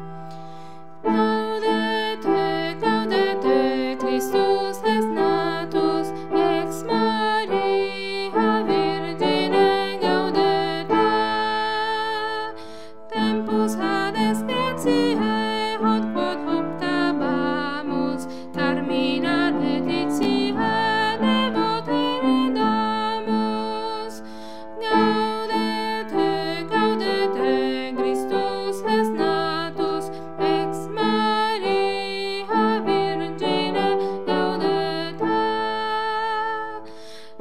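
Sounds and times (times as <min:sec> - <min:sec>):
tenors singing: 0:01.1 - 0:12.3, 0:13.1 - 0:24.1, 0:24.8 - 0:36.5.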